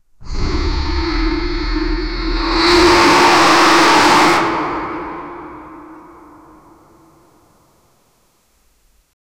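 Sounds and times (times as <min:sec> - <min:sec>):
loud deep intimidating dragon: 0:00.2 - 0:07.0.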